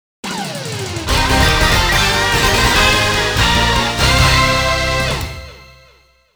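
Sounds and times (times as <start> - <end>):
mission clear background music: 0.4 - 6.1.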